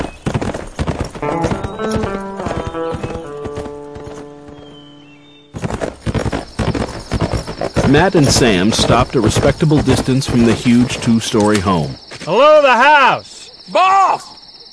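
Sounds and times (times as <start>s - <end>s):
horse hooves clip-clopping as rider leaves: 0.0s - 11.9s
sustained musical tone: 1.2s - 5.5s
speech: 7.9s - 14.3s.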